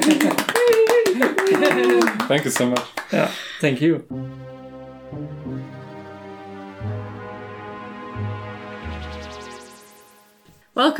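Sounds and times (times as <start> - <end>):
round of applause: 0.0 - 3.3
speech: 1.5 - 4.4, 10.8 - 10.9.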